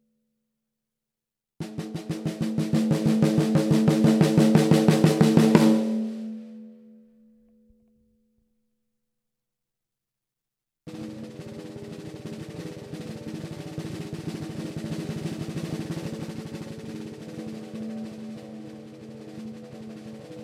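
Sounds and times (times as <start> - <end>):
14x65 oak snare drum: 1.6 - 6.6, 10.9 - 20.4.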